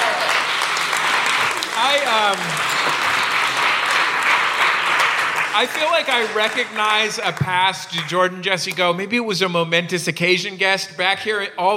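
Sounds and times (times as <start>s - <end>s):
audience applause: 0.0s - 8.8s
speech: 1.8s - 3.0s, 5.6s - 11.7s.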